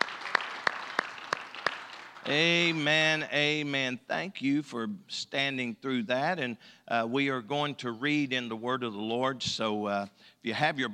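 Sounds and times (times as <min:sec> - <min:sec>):
crowd applause: 0:00.0 - 0:03.0
louder evenly spaced hand claps: 0:00.0 - 0:03.0
speech: 0:02.3 - 0:10.9.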